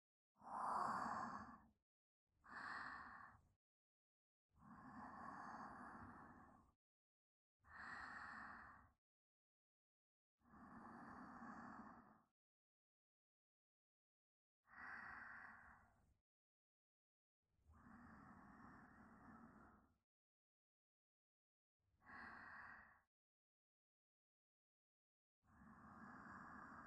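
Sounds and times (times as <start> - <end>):
sleep breathing: 0.4 - 1.6, 2.5 - 3.3, 4.6 - 6.6, 7.7 - 8.8, 10.5 - 12.1, 14.7 - 15.9, 17.8 - 19.7, 22.1 - 22.9, 25.6 - 26.8.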